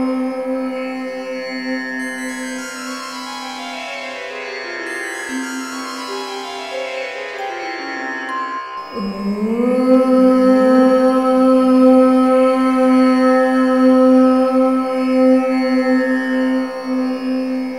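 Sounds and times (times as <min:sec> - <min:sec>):
woman chanting om: 0:00.0 - 0:03.3, 0:08.9 - 0:17.7.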